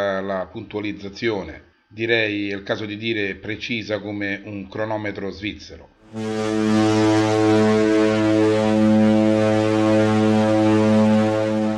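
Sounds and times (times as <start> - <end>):
speech: 0.0 - 7.6
ship's horn: 6.1 - 11.7.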